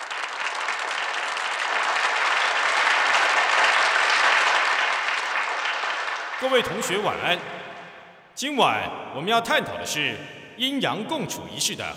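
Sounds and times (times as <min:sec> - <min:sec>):
audience applause: 0:00.0 - 0:06.8
speech: 0:06.4 - 0:07.7, 0:08.4 - 0:11.9.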